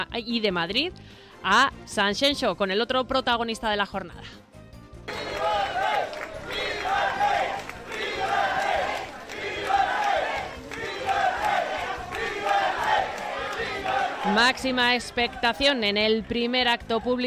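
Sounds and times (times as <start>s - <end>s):
speech: 0.0s - 4.5s, 14.3s - 17.2s
crowd cheering King Juan Carlos at the Club Náutico in Sanxenxo: 5.1s - 17.2s.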